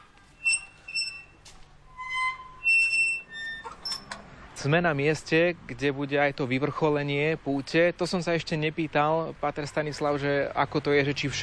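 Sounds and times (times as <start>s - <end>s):
small fence gate being opened: 0.3s - 4.3s
speech: 4.6s - 11.4s.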